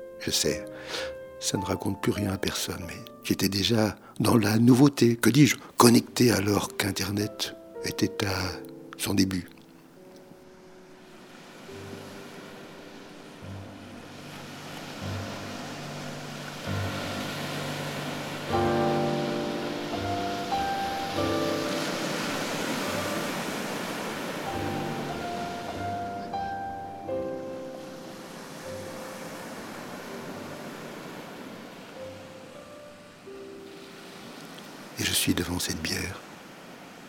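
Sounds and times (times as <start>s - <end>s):
speech: 0.2s - 9.6s
sea waves on the shore: 5.4s - 37.0s
sustained musical tones: 5.9s - 34.1s.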